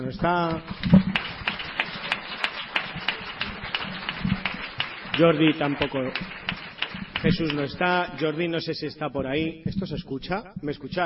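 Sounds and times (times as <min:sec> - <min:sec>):
speech: 0:00.0 - 0:01.1, 0:05.2 - 0:06.4, 0:07.2 - 0:11.0
audience applause: 0:00.7 - 0:08.5.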